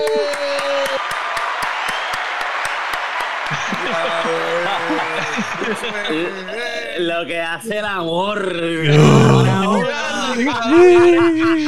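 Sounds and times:
applause: 0.0 - 6.6
laughter: 3.5 - 7.0, 8.8 - 11.6
speech: 5.4 - 11.6.

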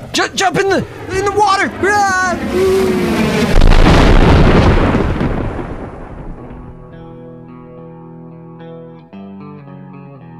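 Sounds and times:
speech: 0.2 - 3.6
missile explosion: 2.5 - 7.0.

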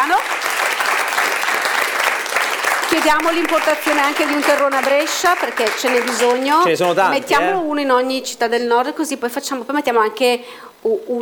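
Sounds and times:
audience applause: 0.0 - 7.6
speech: 2.9 - 11.2.

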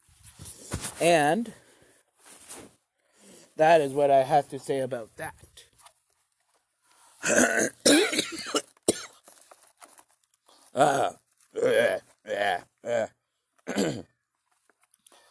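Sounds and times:
speech: 1.0 - 1.6, 3.6 - 5.7, 7.2 - 8.6, 10.8 - 14.1
person clearing throat of saliva: 7.2 - 9.1, 13.7 - 14.1.

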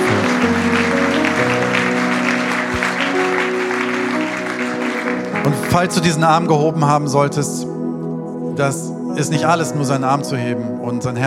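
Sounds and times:
audience applause: 0.0 - 6.0
held keyboard chords playing softly: 0.0 - 11.2
speech: 5.8 - 7.8, 8.6 - 11.2.

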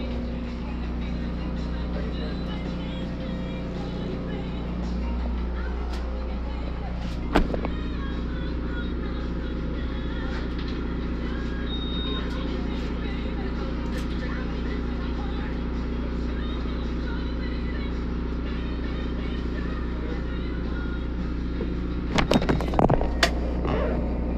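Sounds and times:
local radio station talk and music: 0.0 - 8.4, 9.0 - 17.7
low engine-like hum inside a mobile blood donation bus: 0.0 - 24.3
occasional beeping: 11.6 - 12.4.

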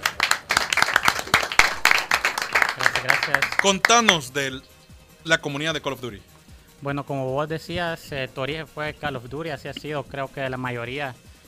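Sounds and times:
applause: 0.0 - 4.4
speech: 3.0 - 11.2.

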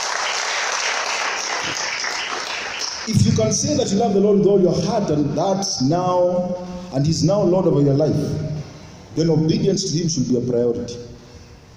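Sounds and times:
round of applause: 0.0 - 3.1
speech: 3.1 - 8.5, 9.2 - 11.1.

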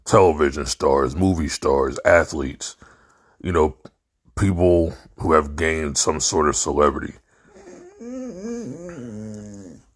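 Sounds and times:
speech: 0.1 - 7.2
dog whimpering: 7.5 - 9.9.

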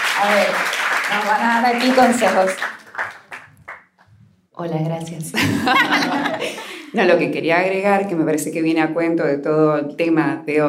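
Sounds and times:
hand claps: 0.0 - 4.1
speech: 0.2 - 2.8, 4.6 - 10.6
laughter: 5.4 - 6.9.

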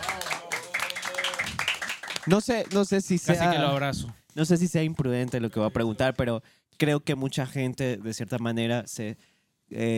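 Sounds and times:
applause: 0.0 - 3.3
speech: 2.3 - 9.9.

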